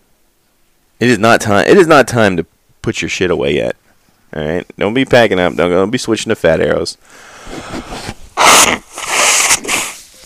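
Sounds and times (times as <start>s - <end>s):
speech: 1.0s - 7.8s
nose blowing into microphone: 7.2s - 10.2s.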